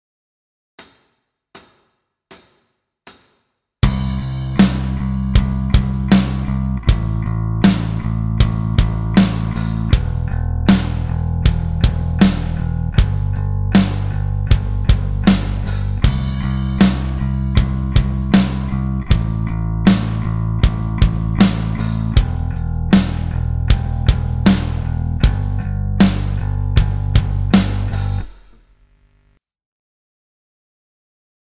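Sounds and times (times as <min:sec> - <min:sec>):
backing track: 0:03.8 - 0:28.6.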